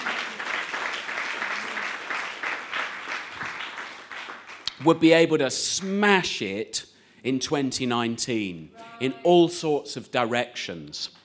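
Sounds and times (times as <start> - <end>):
crowd applauding indoors: 0.0 - 4.9
speech: 4.8 - 11.2.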